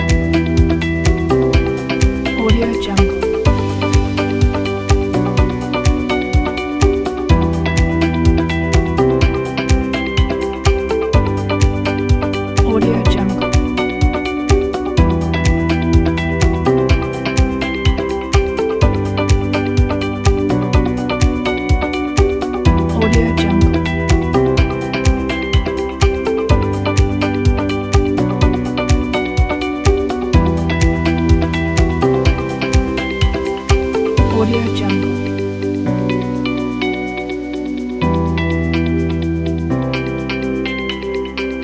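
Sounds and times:
inspiring uplifting upbeat corporate music: 0.0 - 41.6.

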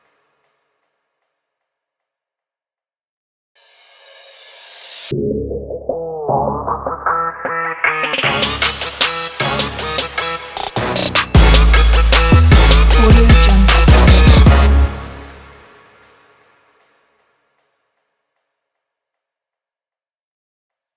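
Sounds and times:
hip hop trap sport logo music: 5.1 - 15.4.

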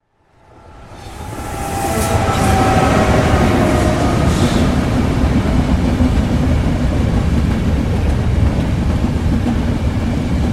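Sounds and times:
train passing by: 0.0 - 10.5.

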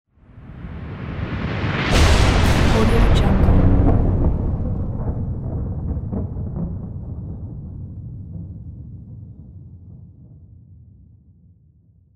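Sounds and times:
artificial thunder: 1.2 - 10.0.

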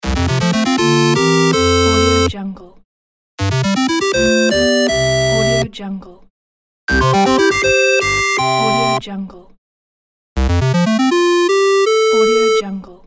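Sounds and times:
8-bit level complete jingle: 0.0 - 2.3, 3.4 - 5.6, 6.9 - 9.0, 10.6 - 12.6.

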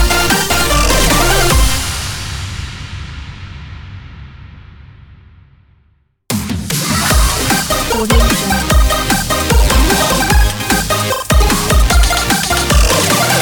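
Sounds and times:
8bit dubstep win logo jingle: 0.0 - 2.7, 6.3 - 13.4.

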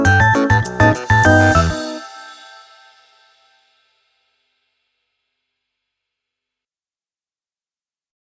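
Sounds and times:
happy funk music: 0.0 - 3.0.

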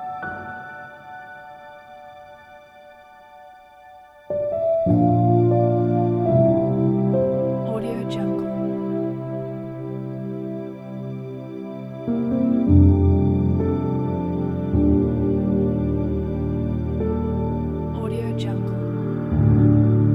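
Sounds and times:
romantic piano piece: 0.0 - 20.1.

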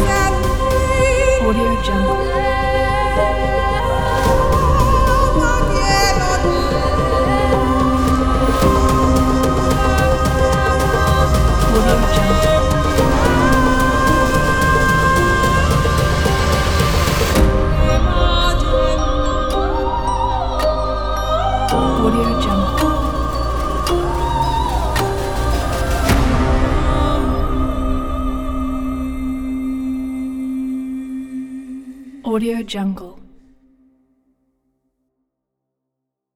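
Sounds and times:
emotional piano music for a trailer: 0.0 - 29.8
choir vocals: 0.0 - 32.4.

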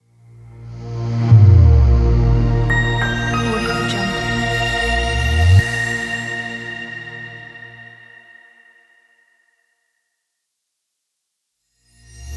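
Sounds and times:
abstract airy logo reveal sound: 0.5 - 8.7.

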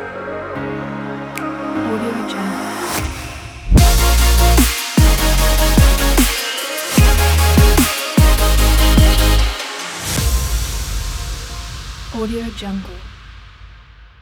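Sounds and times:
uplifting future bass music: 1.3 - 10.5.

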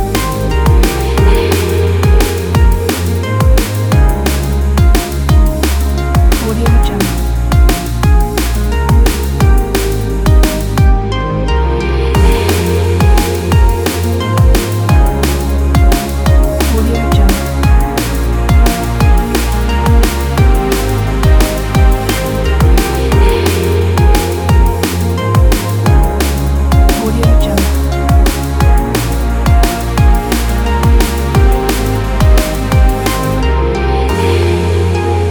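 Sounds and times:
powerful action drum and bass music: 0.0 - 35.2.

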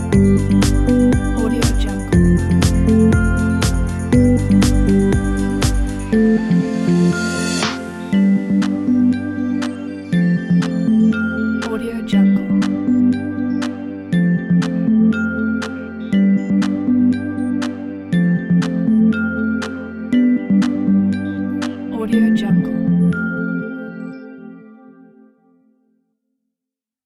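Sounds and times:
minimal uplifting background music: 0.0 - 25.3.

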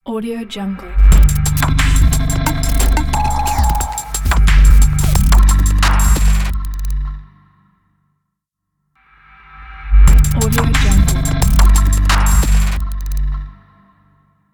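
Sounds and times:
electric glitch logo: 1.1 - 7.0, 10.1 - 13.3.

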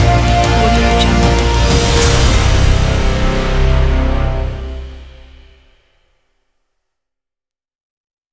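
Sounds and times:
epic and modern heavy blockbuster music: 0.0 - 5.6.

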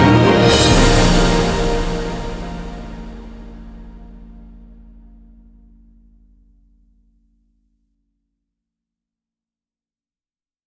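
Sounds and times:
orchestral music: 0.0 - 4.8.

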